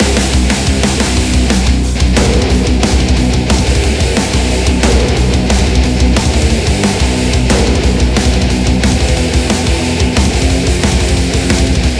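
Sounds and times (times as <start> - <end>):
music song loop: 0.0 - 11.9.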